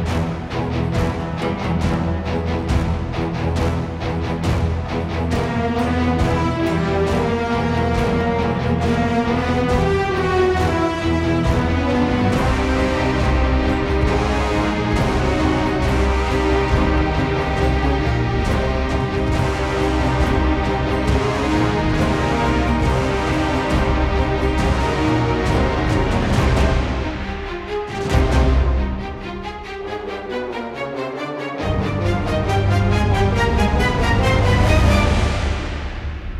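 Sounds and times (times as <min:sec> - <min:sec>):
game boss battle background music: 0:00.0 - 0:36.3.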